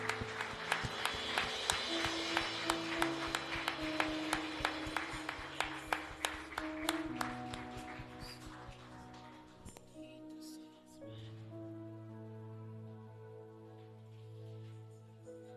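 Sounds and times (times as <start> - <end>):
audience clapping in a steady even rhythm: 0.0 - 9.8.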